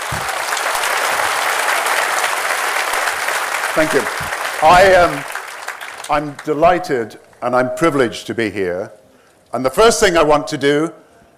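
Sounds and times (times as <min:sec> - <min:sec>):
audience applause at the Greenbelt Festival: 0:00.0 - 0:06.7
speech: 0:03.8 - 0:05.3, 0:06.1 - 0:11.0.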